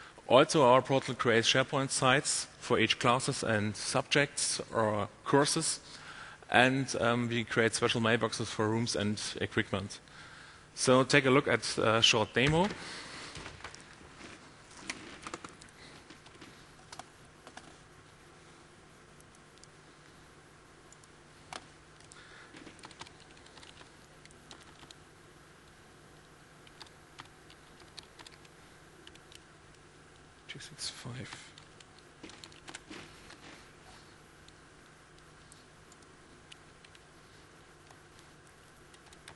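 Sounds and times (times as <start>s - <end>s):
speech: 0.3s - 10.2s, 10.8s - 13.0s
computer keyboard typing an administration account name: 14.9s - 17.8s, 20.9s - 25.0s, 26.6s - 29.4s, 31.3s - 33.5s, 35.5s - 37.0s, 37.8s - 39.3s.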